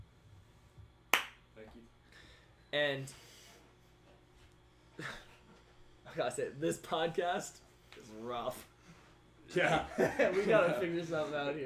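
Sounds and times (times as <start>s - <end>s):
hand clap: 1.1s - 1.4s
speech: 2.7s - 3.3s, 5.0s - 5.2s, 6.1s - 8.7s, 9.5s - 11.6s
laughter: 9.6s - 11.2s.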